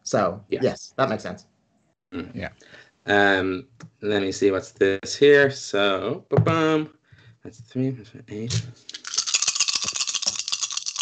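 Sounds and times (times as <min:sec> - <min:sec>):
speech: 0:00.1 - 0:01.5, 0:02.1 - 0:09.0
many dice shaken and rolled: 0:08.9 - 0:11.0.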